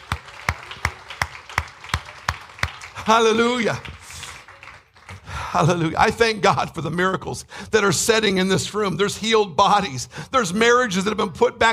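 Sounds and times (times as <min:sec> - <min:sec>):
audience clapping in unison: 0:00.0 - 0:06.4
speech: 0:03.0 - 0:03.9, 0:05.5 - 0:11.7.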